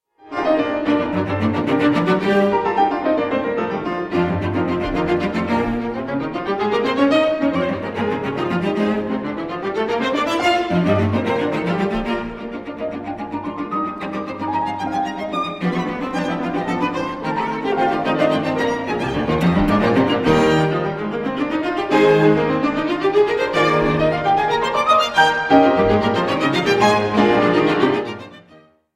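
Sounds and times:
quintet for piano and strings in E flat major: 0.2 - 28.8.

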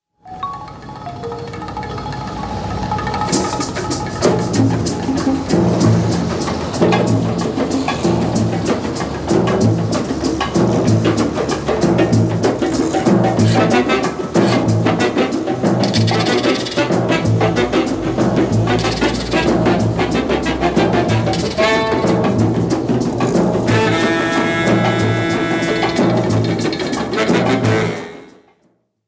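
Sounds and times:
saxophones: 0.3 - 7.2, 12.7 - 28.5
percussion: 0.3 - 28.5.

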